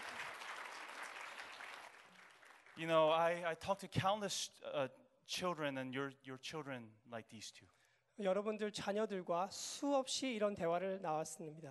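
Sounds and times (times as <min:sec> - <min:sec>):
audience applause: 0:00.0 - 0:02.8
speech: 0:02.8 - 0:11.7.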